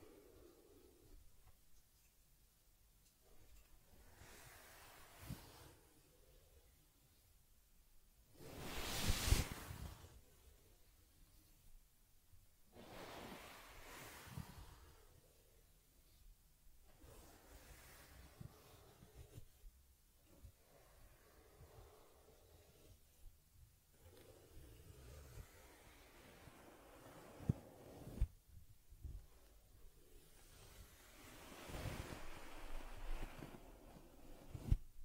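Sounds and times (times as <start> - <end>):
teddy bear fur combing and brushing strokes: 4.0 - 6.0, 8.4 - 10.2, 12.8 - 15.2, 17.0 - 19.5, 20.6 - 23.1, 24.0 - 28.3, 29.9 - 34.8.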